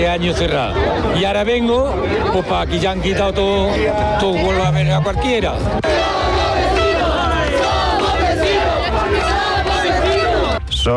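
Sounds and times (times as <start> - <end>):
speech: 0.0 - 6.6
celebrating crowd applause: 5.8 - 10.6.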